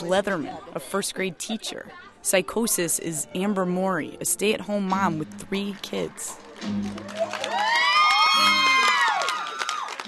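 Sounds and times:
speech: 0.0 - 7.7
crowd cheering: 6.4 - 10.0
high-pitched whoops and shouts: 7.0 - 10.0.

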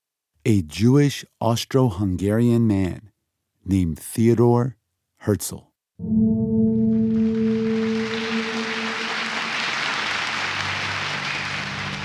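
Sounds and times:
speech: 0.4 - 3.1, 3.7 - 6.5
low held tone: 6.0 - 9.7
large crowd applause: 7.0 - 12.0.

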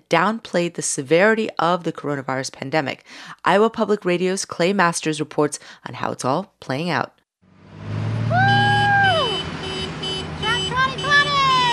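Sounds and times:
speech: 0.1 - 7.2
parade of tractors rolling down a thoroughfare: 7.6 - 11.7.

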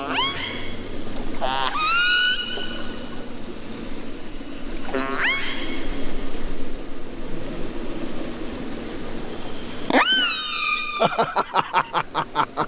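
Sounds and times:
fish-eating killer whale calls: 0.0 - 3.3, 4.7 - 6.2, 9.8 - 11.1
laughter: 11.0 - 12.6.

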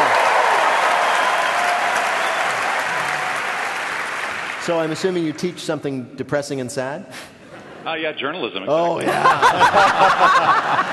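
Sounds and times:
studio audience applause: 0.0 - 5.6, 9.4 - 10.9
speech: 4.7 - 10.9
laughter: 9.0 - 10.9.

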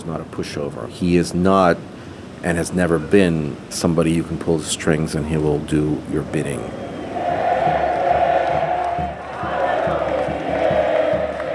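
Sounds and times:
speech: 0.0 - 6.8
huge crowd celebrating and chanting: 6.8 - 11.5.

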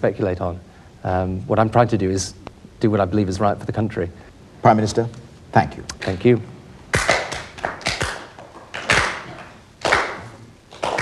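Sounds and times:
speech: 0.0 - 6.5
slow handclapping of disapproval: 6.9 - 11.0.

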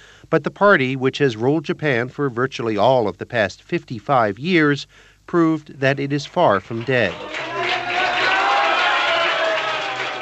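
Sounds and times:
speech: 0.3 - 7.4
crowd cheering at party headquarters in Tokyo: 6.1 - 10.2
crowd shouting banzai at party headquarters in Tokyo: 7.1 - 10.2.

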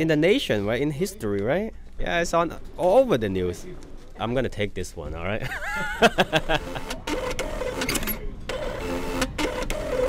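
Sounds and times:
speech: 0.0 - 7.1
laughter: 5.4 - 7.1
lottery ticket machine printing tickets: 6.3 - 10.0.

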